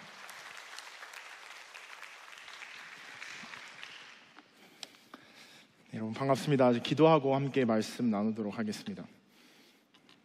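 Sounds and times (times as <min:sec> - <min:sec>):
applause welcoming the pastor: 0:00.0 - 0:04.4
speech: 0:06.0 - 0:09.2.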